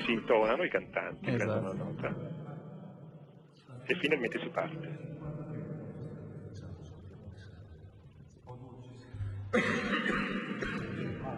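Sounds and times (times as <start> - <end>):
speech: 0.1 - 2.5, 3.9 - 5.1, 9.5 - 10.0
person clearing phlegm from the throat: 9.5 - 11.3.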